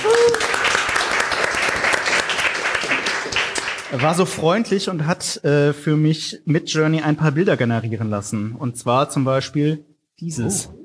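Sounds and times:
audience applause: 0.0 - 4.0
speech: 3.9 - 10.8.

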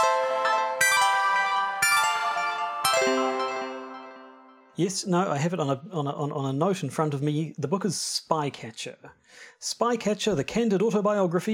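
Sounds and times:
ringing chime: 0.0 - 4.8
speech: 4.8 - 11.5.

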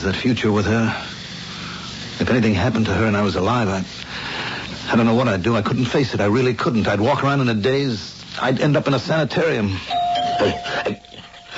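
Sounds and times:
speech: 0.0 - 1.1, 2.2 - 4.0, 4.9 - 11.0
doorbell ringing: 9.9 - 11.5.

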